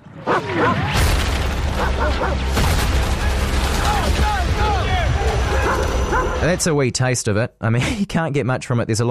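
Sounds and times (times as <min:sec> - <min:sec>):
gunfire in a film trailer: 0:00.9 - 0:04.7
booming hits: 0:00.9 - 0:06.2
speech: 0:06.2 - 0:09.1.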